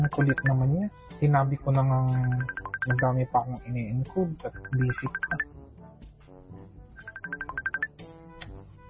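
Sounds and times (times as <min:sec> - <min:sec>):
phone ringtone: 0:00.0 - 0:00.6, 0:02.2 - 0:03.1, 0:04.5 - 0:05.4, 0:07.0 - 0:07.9
speech: 0:00.1 - 0:05.5.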